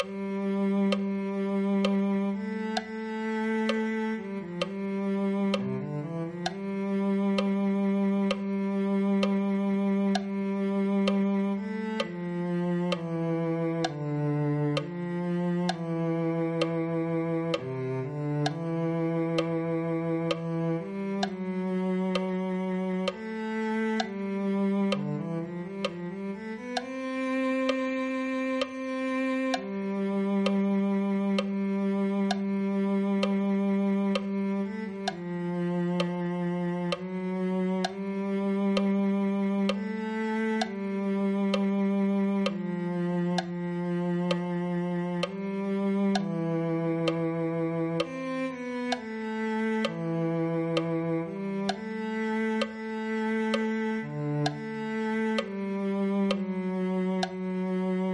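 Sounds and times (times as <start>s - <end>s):
cello: 0.0s - 58.1s.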